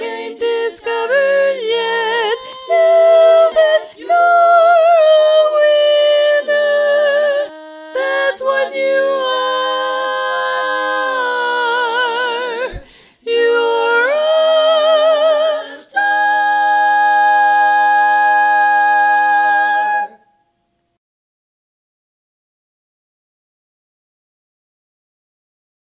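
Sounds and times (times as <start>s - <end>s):
tenor singing: 0.0s - 20.3s.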